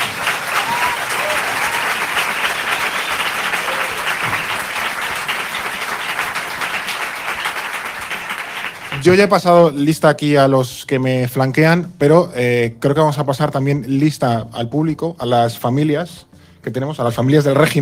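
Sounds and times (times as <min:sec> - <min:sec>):
audience applause: 0:00.0 - 0:09.2
speech: 0:09.0 - 0:17.8.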